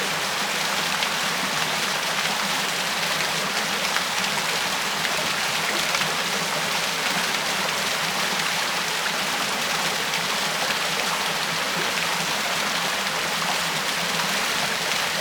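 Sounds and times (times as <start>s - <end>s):
waterfall in a forest: 0.0s - 15.2s.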